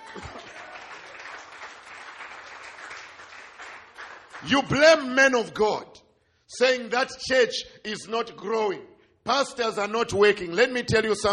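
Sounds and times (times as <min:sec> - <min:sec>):
audience clapping hands: 0:00.0 - 0:05.1
speech: 0:00.1 - 0:00.4, 0:04.4 - 0:05.9, 0:06.5 - 0:11.3.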